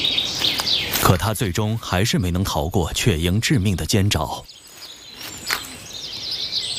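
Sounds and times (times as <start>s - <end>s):
sparrows flapping wings as they flee: 0.2s - 1.1s, 4.7s - 5.9s
speech: 1.1s - 4.7s.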